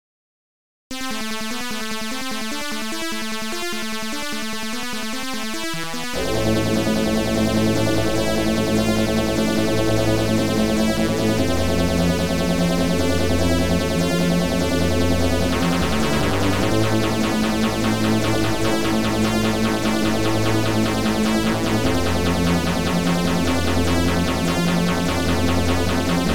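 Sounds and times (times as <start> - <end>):
OPL2 FM synth chip music: 0.9 - 26.3.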